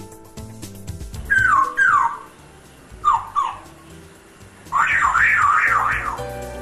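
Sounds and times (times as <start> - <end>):
African grey parrot imitating car alarm: 1.2 - 2.3, 3.0 - 3.7, 4.7 - 6.3.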